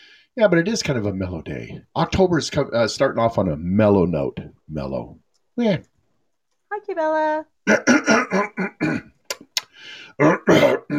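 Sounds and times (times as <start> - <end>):
speech: 0.4 - 5.9, 6.7 - 9.0, 9.8 - 10.9
person clearing throat: 7.6 - 9.2, 10.2 - 10.9
breathy exhale: 9.7 - 10.2.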